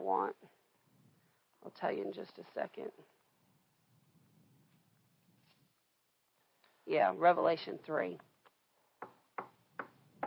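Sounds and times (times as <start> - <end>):
speech: 0.0 - 0.6, 1.6 - 3.2, 6.9 - 8.3
knocking: 9.0 - 10.2.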